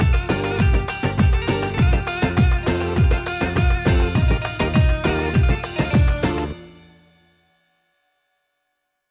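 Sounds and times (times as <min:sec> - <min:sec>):
OR700TR keyboard rhythm in 2/4: 0:00.0 - 0:06.7.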